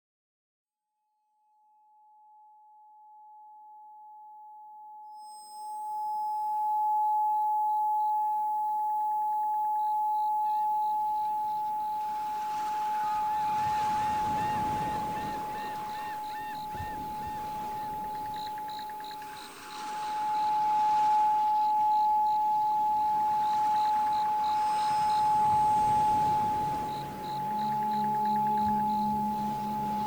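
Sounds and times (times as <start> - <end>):
852 Hz tone: 5.0 - 30.0.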